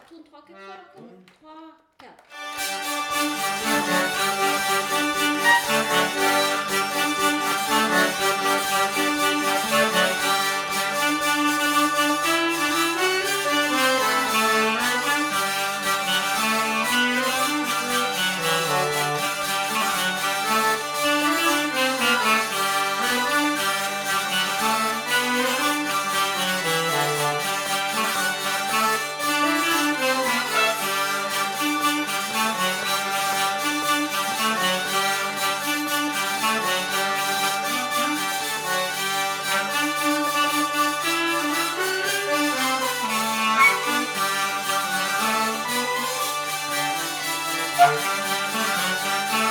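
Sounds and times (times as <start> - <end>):
polka music: 2.3 - 49.4.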